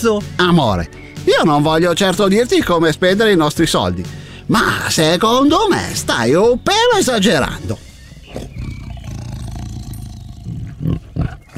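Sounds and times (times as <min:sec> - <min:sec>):
speech: 0:00.0 - 0:08.5
tiger roaring: 0:08.1 - 0:11.5.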